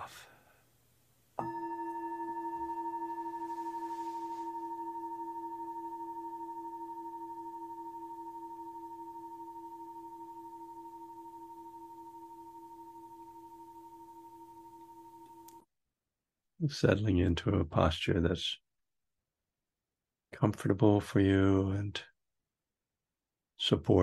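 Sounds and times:
meditation bell ringing: 1.4 - 15.6
speech: 16.6 - 18.6, 20.4 - 22.1, 23.6 - 24.0.

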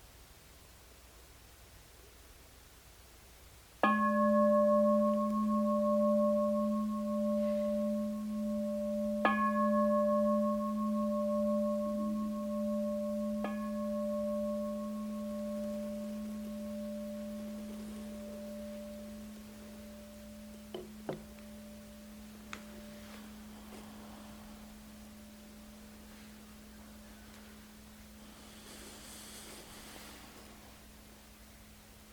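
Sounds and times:
meditation bell ringing: 3.8 - 28.6.

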